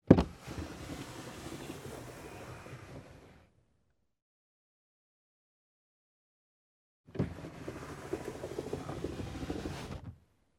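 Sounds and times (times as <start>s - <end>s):
car glass window lowered and raised manually: 0.0s - 3.5s, 7.1s - 10.1s.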